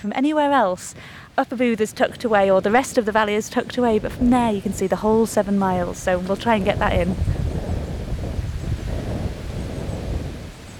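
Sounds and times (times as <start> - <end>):
speech: 0.0 - 7.4
wind blowing outdoors in a valley buffeting the microphone: 0.0 - 10.7.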